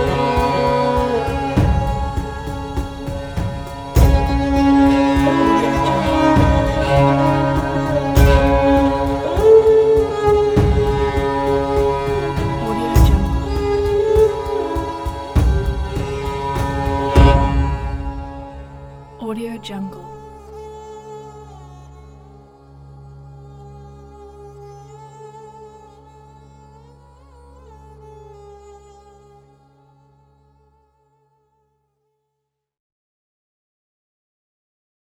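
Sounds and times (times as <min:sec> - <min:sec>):
ethnic music: 0:00.0 - 0:22.4.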